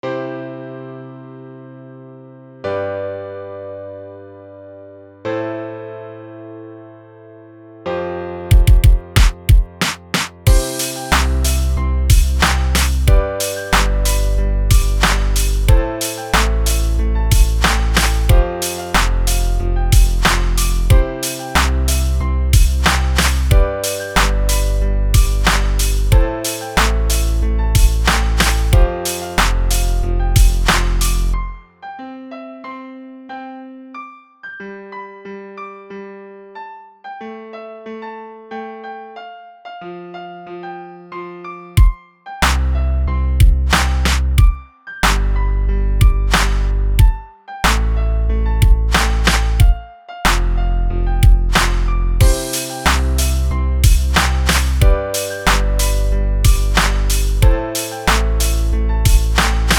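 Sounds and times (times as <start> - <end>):
piano: 0.0 - 59.7
beat: 8.5 - 31.4, 43.4 - 45.4, 46.0 - 47.9, 48.6 - 50.6, 51.2 - 59.7.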